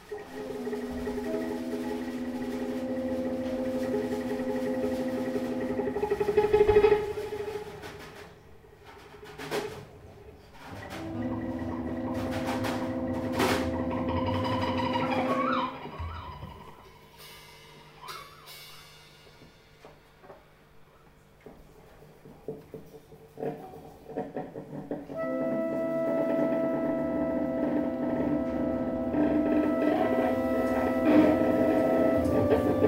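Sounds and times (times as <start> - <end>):
big band: 0.0 - 8.2, 10.6 - 19.8, 25.2 - 32.8.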